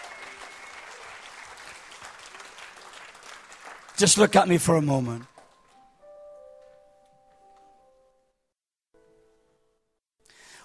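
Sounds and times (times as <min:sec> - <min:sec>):
audience clapping: 0:00.0 - 0:06.2
speech: 0:04.0 - 0:05.3.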